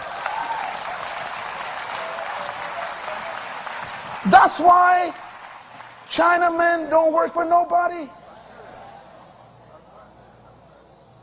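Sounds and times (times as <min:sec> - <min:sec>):
audience applause: 0:00.0 - 0:06.9
speech: 0:04.2 - 0:05.2, 0:06.1 - 0:08.2.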